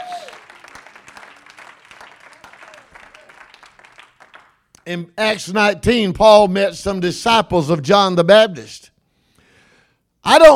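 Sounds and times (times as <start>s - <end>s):
audience clapping: 0.0s - 4.9s
speech: 4.9s - 8.9s, 10.2s - 10.5s.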